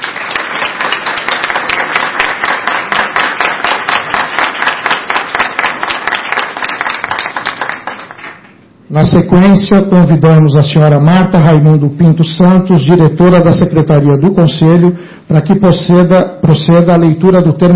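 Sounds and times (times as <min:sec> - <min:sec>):
audience applause: 0:00.0 - 0:08.5
speech: 0:08.9 - 0:17.7.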